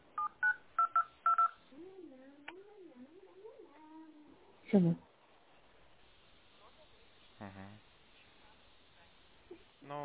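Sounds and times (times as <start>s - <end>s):
DTMF keypad tones as a telephone number is dialed: 0.2s - 1.6s
speech: 4.7s - 5.1s.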